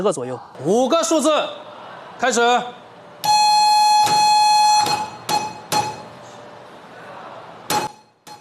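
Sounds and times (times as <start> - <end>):
speech: 0.0 - 2.8
Morse code signal tones: 3.2 - 6.1.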